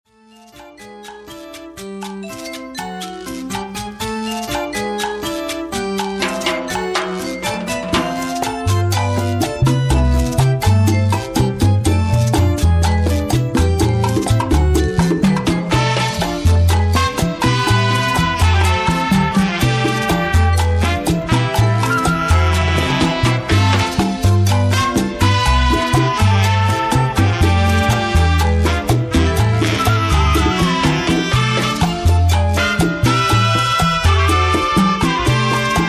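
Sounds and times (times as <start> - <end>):
Latin jazz music: 0.1 - 35.8.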